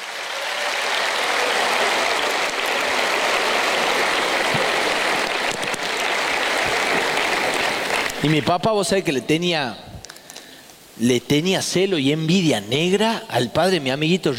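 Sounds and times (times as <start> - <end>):
audience applauding: 0.0 - 8.5
speech: 8.2 - 9.8, 11.0 - 14.3.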